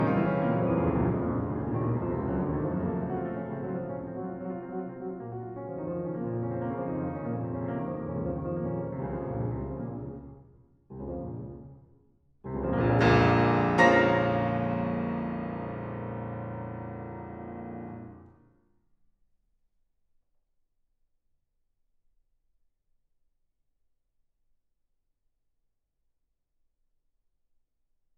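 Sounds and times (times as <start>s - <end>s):
piano sonata in B flat minor presto: 0.0s - 18.3s.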